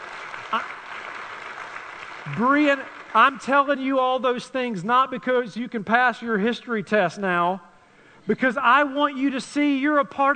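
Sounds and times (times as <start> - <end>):
audience clapping: 0.0 - 4.0
speech: 0.5 - 0.8, 2.3 - 10.3.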